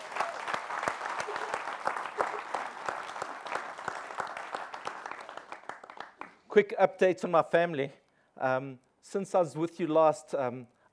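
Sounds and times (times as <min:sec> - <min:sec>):
audience applause: 0:00.0 - 0:06.4
speech: 0:06.6 - 0:10.9.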